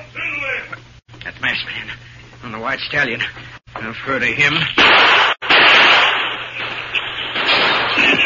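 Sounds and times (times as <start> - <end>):
speech: 1.5 - 5.3
gunshot cracks: 4.8 - 8.2.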